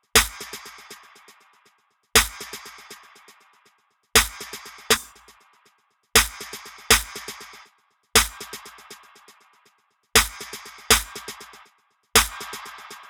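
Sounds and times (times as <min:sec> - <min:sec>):
snare drum: 0:00.2 - 0:01.1, 0:02.2 - 0:03.1, 0:04.2 - 0:05.2, 0:06.2 - 0:07.6, 0:08.2 - 0:08.7, 0:10.2 - 0:11.6, 0:12.2 - 0:13.0.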